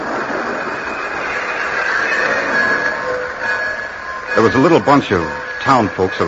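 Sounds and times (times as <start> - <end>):
train pulling into the station, wheels rumbling on rails: 0.0 - 6.2
thin metallic train brake squeal: 0.1 - 6.2
speech: 4.4 - 6.2.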